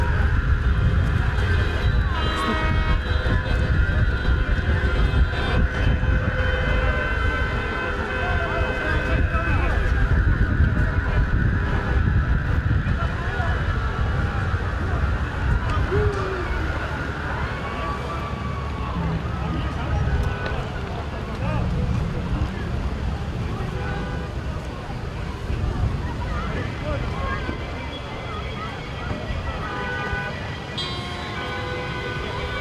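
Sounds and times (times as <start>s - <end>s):
low rumble of traffic: 0.0s - 32.5s
protest crowd murmur in Belarus: 0.0s - 32.5s
car horns tooting: 0.6s - 9.8s, 29.5s - 32.5s.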